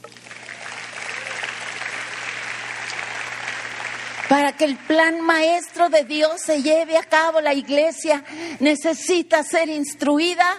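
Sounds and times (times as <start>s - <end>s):
audience applause: 0.0s - 5.6s
speech: 4.3s - 10.5s.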